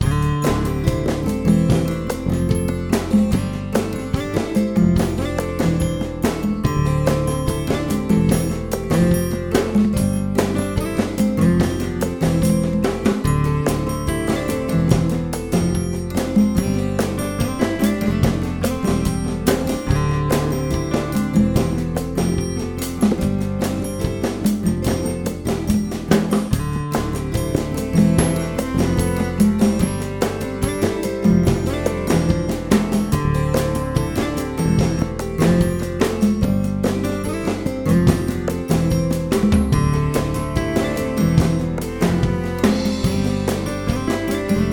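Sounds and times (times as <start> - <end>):
acoustic bossa nova music: 0.0 - 44.7.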